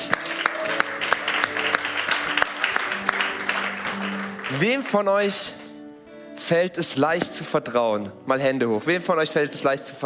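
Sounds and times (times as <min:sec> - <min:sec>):
audience applause for first-time visitors: 0:00.0 - 0:05.0
speech: 0:04.5 - 0:05.6, 0:06.5 - 0:10.0.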